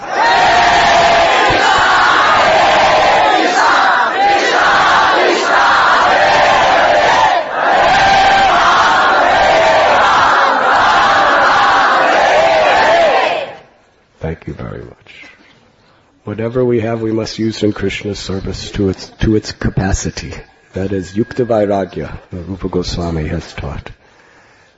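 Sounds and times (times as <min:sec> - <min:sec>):
crowd of about 2,000 devotees chanting during kirtan: 0:00.0 - 0:13.7
speech: 0:16.4 - 0:24.0.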